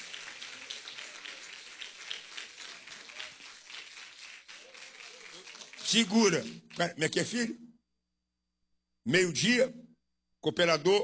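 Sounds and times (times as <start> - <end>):
audience clapping hands: 0.0 - 7.4
speech: 5.9 - 7.6, 9.0 - 9.8, 10.4 - 11.0.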